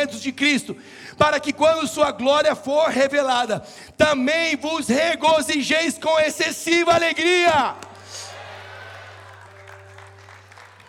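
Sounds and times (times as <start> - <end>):
speech: 0.0 - 8.2
audience applause: 7.8 - 10.8.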